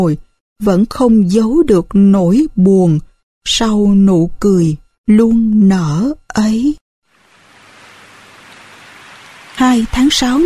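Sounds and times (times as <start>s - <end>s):
speech: 0.0s - 6.8s, 9.6s - 10.4s
afternoon rain dripping from a leaf roof and tree leaves: 7.1s - 10.4s.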